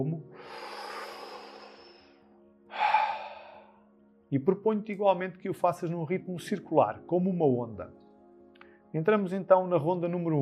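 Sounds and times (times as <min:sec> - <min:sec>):
deep slow breath during a guided breathing exercise: 0:00.4 - 0:03.8
speech: 0:04.3 - 0:08.0, 0:08.9 - 0:10.3.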